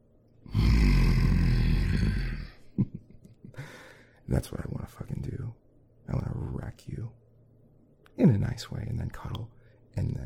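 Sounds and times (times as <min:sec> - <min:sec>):
person growling like an animal: 0:00.5 - 0:02.6
speech: 0:04.3 - 0:05.6, 0:06.8 - 0:07.2, 0:08.2 - 0:10.2.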